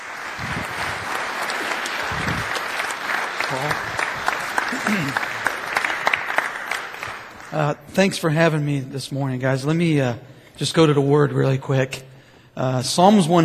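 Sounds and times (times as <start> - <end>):
applause from a men's church gathering welcoming a speaker: 0.0 - 7.9
speech: 3.5 - 3.9, 4.9 - 5.3, 7.5 - 13.4.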